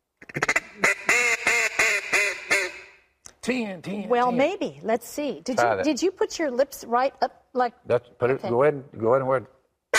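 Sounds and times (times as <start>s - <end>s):
duck call being blown: 0.2s - 3.0s
speech: 0.4s - 1.0s, 3.5s - 9.6s.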